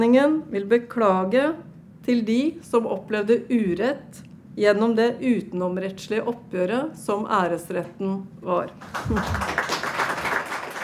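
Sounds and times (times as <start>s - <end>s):
speech: 0.0s - 9.8s
audience applause: 8.8s - 10.8s.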